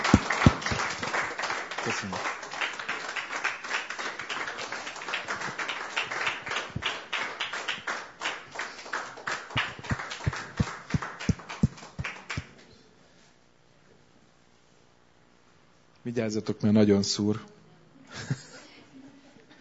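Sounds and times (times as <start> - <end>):
crowd applause: 0.0 - 12.5
speech: 1.8 - 2.3, 16.1 - 17.5.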